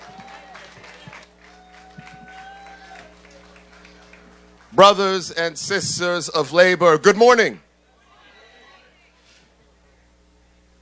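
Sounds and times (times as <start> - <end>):
audience applause: 0.0 - 5.0
speech: 4.8 - 7.7.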